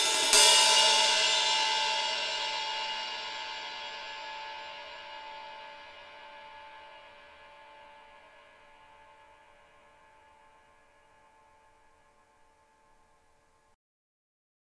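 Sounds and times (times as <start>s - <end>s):
ride cymbal ping: 0.0s - 13.7s.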